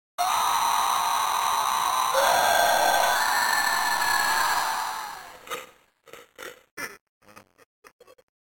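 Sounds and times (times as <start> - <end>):
person screaming: 0.2 - 5.5.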